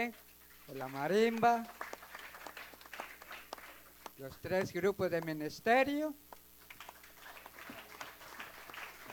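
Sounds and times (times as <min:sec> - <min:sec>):
speech: 0:00.0 - 0:01.8, 0:04.2 - 0:06.2
soft audience applause: 0:00.7 - 0:05.3, 0:06.6 - 0:09.1.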